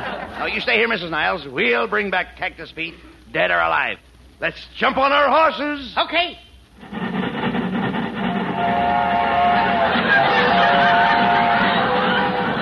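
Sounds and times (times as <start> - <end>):
laughter: 0.0 - 0.9, 9.4 - 12.5
speech: 0.4 - 6.4
train sound effect: 6.8 - 12.5.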